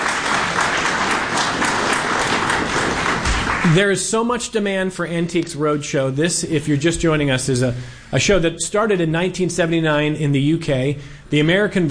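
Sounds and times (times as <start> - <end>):
live audience in Rochester applauding the Antiques Roadshow team: 0.0 - 4.0
speech: 3.6 - 11.8.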